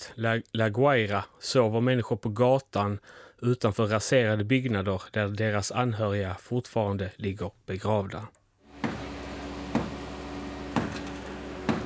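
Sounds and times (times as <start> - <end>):
speech: 0.0 - 8.4
hammer banging on concrete: 8.8 - 9.1, 9.7 - 10.1, 10.7 - 11.8.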